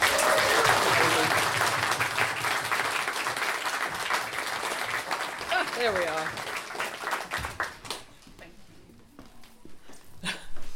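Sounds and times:
audience applause welcoming a performer to the stage: 0.0 - 8.1
speech: 5.8 - 6.4.

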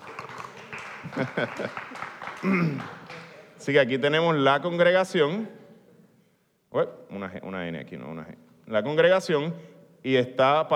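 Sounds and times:
laughter: 0.0 - 3.5
applause: 0.0 - 3.6
speech: 1.1 - 3.0, 3.6 - 5.6, 6.7 - 10.7.

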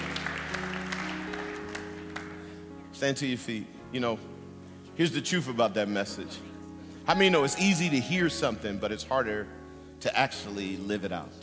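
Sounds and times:
audience applauding: 0.0 - 2.6
sustained keyboard chords: 0.0 - 11.4
speech: 3.0 - 4.4, 5.0 - 6.5, 7.1 - 11.4.

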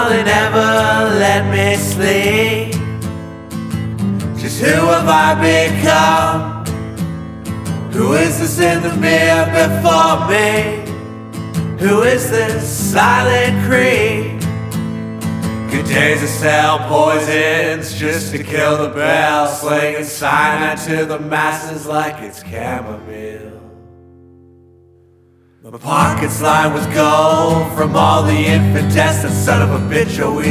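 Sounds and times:
child choir singing in London: 0.0 - 2.6, 4.4 - 6.6, 8.0 - 10.8, 15.7 - 23.8, 26.0 - 30.4
smooth guitar: 0.0 - 30.4.

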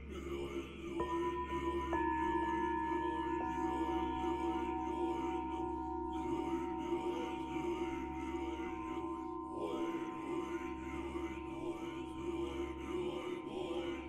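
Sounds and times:
Buddhist chanting: 0.0 - 14.0
bells ringing: 1.0 - 12.6.

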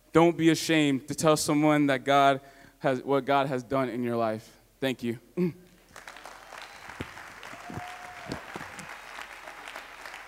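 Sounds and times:
speech: 0.2 - 5.6
audience applauding: 5.8 - 10.2.

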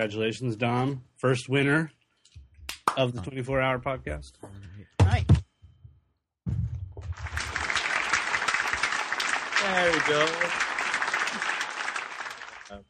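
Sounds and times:
speech: 0.0 - 2.0, 3.0 - 5.4, 9.6 - 10.7, 12.7 - 12.8
applause track: 7.1 - 12.8.

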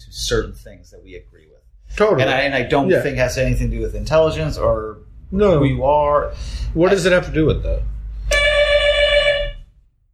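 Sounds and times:
speech: 0.1 - 8.4
doorbell ringing: 8.3 - 9.6.

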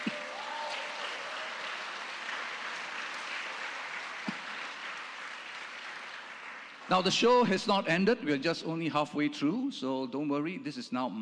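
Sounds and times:
church congregation at All Saints Church clapping at a carol service: 0.0 - 8.0
speech: 6.9 - 11.2.

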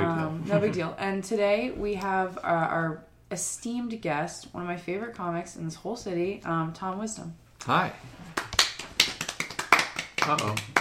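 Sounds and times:
speech: 0.5 - 8.3, 10.3 - 10.7
clapping: 8.3 - 10.7.

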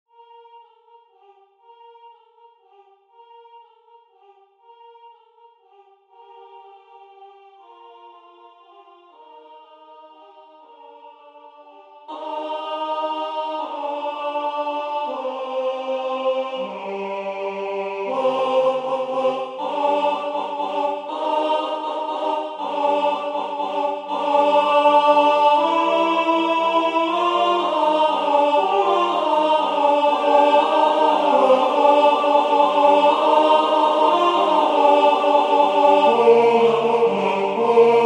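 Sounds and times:
tenor singing a carol: 7.7 - 38.0.

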